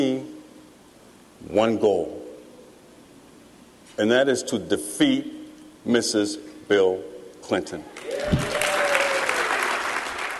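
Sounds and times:
speech: 1.4s - 2.2s, 4.0s - 8.6s
crowd applauding at a political convention in Cleveland: 8.0s - 10.3s.

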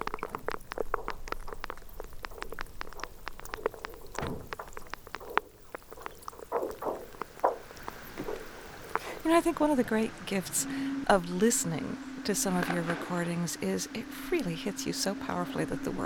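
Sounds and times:
brash ice percolating: 0.0s - 16.0s
icebergs groaning: 0.0s - 16.0s
speech: 9.3s - 16.0s.

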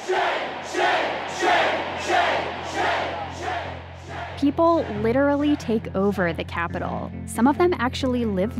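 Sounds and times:
protest crowd chanting: 0.0s - 5.9s
speech: 4.4s - 8.5s.

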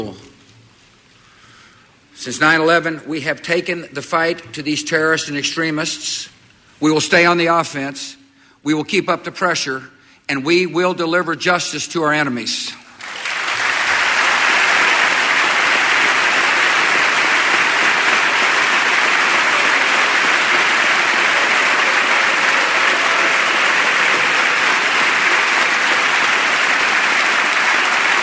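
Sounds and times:
speech: 0.0s - 0.3s, 2.2s - 12.8s
chamber members applauding: 13.0s - 28.2s.

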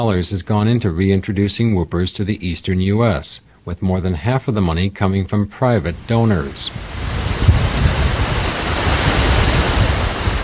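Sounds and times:
speech: 0.0s - 7.1s
wind on a breezy day at a national wildlife refuge in Wisconsin: 5.6s - 10.4s.

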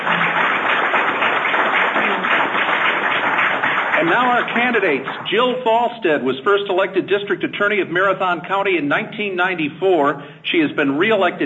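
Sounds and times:
audience applause for the panel: 0.0s - 5.6s
speech: 4.0s - 11.4s.

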